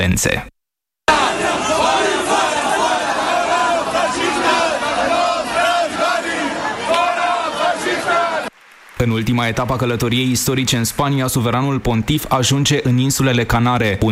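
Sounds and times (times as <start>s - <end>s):
speech: 0.0s - 0.5s, 9.0s - 14.1s
rival nationalist groups shouting at each other: 1.1s - 8.5s.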